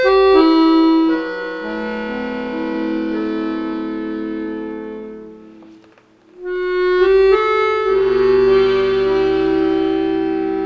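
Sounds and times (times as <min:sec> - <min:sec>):
accordion duet tuned to 432 Hz: 0:00.0 - 0:10.6.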